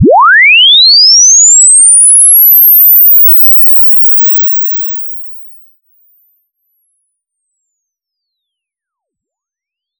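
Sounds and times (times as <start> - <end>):
linear sine sweep: 0.0 - 4.9.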